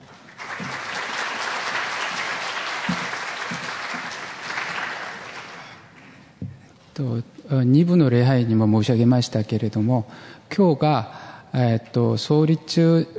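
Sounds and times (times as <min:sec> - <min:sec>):
audience applause: 0:00.0 - 0:06.2
speech: 0:07.0 - 0:13.1.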